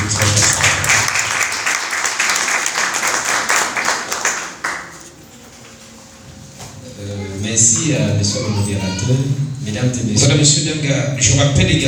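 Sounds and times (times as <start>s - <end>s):
audience applause: 0.0s - 5.1s
speech: 7.6s - 11.8s.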